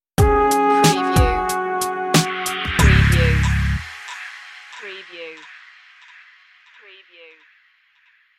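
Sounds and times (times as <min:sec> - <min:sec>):
jazz stinger: 0:00.2 - 0:05.5.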